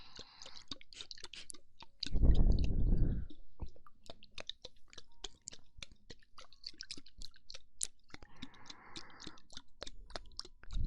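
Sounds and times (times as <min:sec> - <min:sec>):
wet ear-eating mouth sounds: 0:00.0 - 0:10.8.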